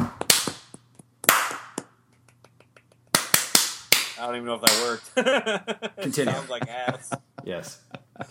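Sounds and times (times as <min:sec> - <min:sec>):
sparse golf clap: 0:00.0 - 0:05.0
speech: 0:04.2 - 0:08.2
laughter: 0:05.1 - 0:08.2.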